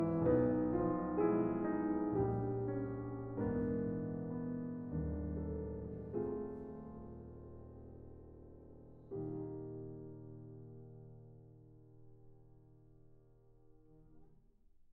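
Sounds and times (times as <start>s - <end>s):
expressive andante study: 0.0s - 11.8s.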